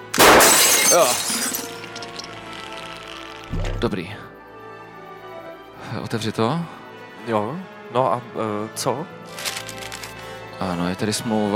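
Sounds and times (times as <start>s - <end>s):
capsule smashed with a hammer: 0.0s - 2.6s
glassy fragments tinkling: 0.3s - 3.5s
speech: 0.9s - 1.3s, 3.8s - 4.3s, 5.9s - 9.4s, 10.6s - 11.5s.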